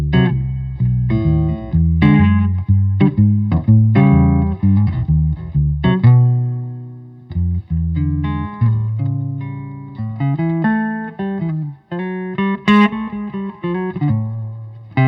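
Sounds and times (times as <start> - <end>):
seven-string maple and spruce electric archtop guitar through an amp: 0.0 - 15.0.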